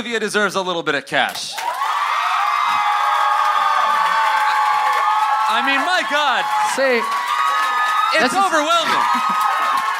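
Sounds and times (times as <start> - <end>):
speech: 0.0 - 1.8, 5.5 - 7.2, 8.1 - 9.6
audience applause: 1.6 - 9.9.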